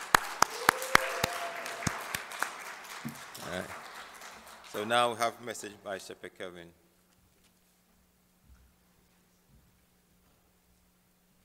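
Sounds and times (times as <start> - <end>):
audience clapping: 0.0 - 5.8
speech: 3.5 - 3.8, 4.7 - 6.8.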